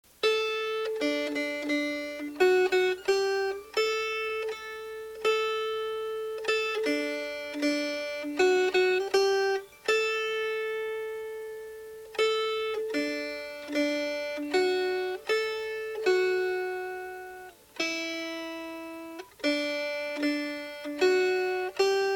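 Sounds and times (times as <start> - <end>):
melody: 0.2 - 22.1.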